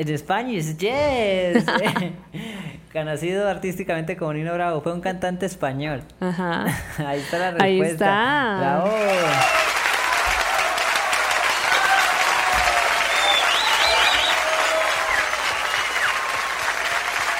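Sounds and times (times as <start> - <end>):
speech: 0.0 - 9.6
applause: 8.8 - 17.3.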